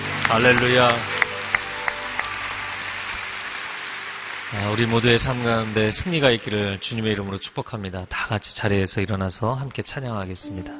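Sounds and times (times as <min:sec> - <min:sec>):
audience applauding: 0:00.0 - 0:07.9
speech: 0:00.3 - 0:01.2, 0:04.5 - 0:10.7.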